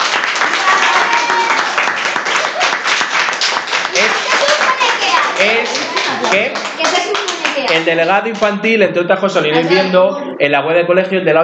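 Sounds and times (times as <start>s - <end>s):
audience applause: 0.0s - 8.6s
speech: 6.2s - 11.4s.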